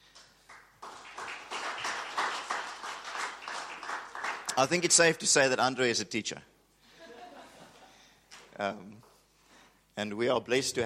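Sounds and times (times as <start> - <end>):
church congregation applause welcoming a speaker: 0.1 - 5.2
speech: 4.6 - 6.5, 8.6 - 9.1, 10.0 - 10.8
laughter: 6.9 - 7.9.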